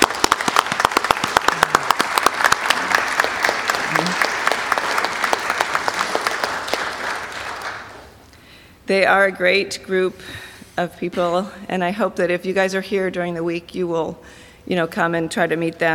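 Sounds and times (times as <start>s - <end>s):
audience applause: 0.0s - 8.2s
speech: 8.9s - 15.9s.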